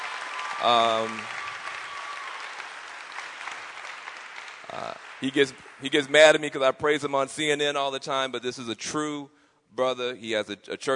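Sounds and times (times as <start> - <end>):
audience applause: 0.0 - 6.6
speech: 0.6 - 1.4, 4.7 - 10.9.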